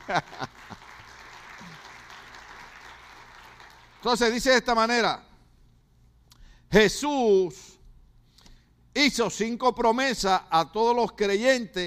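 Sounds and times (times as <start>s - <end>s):
audience applauding: 0.0s - 4.3s
speech: 0.1s - 0.8s, 4.0s - 5.3s, 6.7s - 7.8s, 9.0s - 11.8s.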